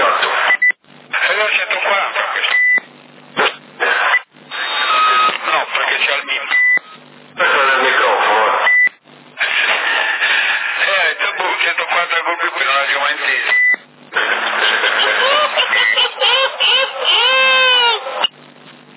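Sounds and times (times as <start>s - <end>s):
CB radio chatter among operators in Sassari: 0.0s - 2.9s, 3.8s - 18.3s
short steady electronic beep on CB radio: 4.1s - 5.4s
laughter: 14.2s - 18.2s.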